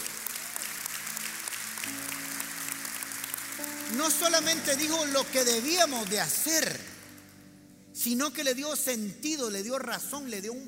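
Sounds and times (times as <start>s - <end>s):
audience applause: 0.0s - 7.3s
speech: 3.9s - 6.9s, 8.0s - 10.6s.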